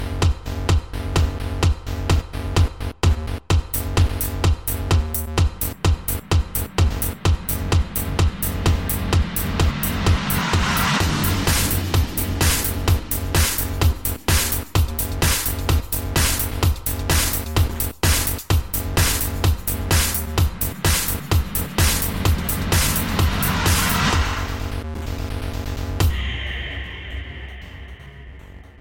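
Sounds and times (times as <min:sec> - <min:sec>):
8-bit remix music: 0:00.0 - 0:28.7.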